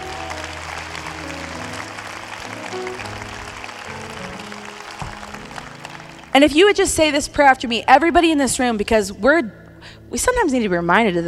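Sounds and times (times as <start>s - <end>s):
audience clapping: 0.0s - 7.6s
speech: 6.4s - 11.2s.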